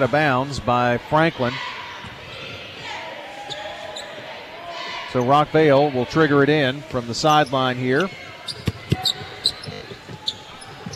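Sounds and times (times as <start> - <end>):
speech: 0.0 - 1.8, 5.1 - 8.7
basketball game crowd noise: 0.0 - 10.9
basketball bounce pass thumping off the court: 8.0 - 10.9.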